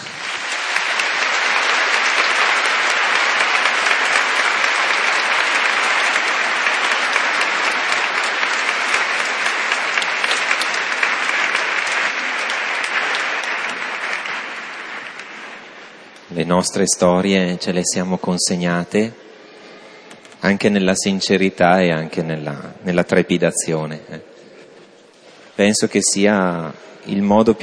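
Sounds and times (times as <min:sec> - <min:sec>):
audience applause: 0:00.0 - 0:16.4
speech: 0:16.5 - 0:19.3, 0:20.5 - 0:24.3, 0:25.6 - 0:27.6.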